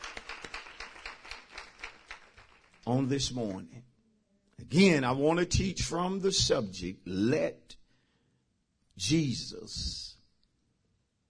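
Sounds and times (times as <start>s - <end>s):
church congregation clapping rhythmically in praise after a sermon: 0.0s - 3.6s
speech: 2.9s - 3.9s, 4.7s - 7.7s, 9.0s - 10.1s.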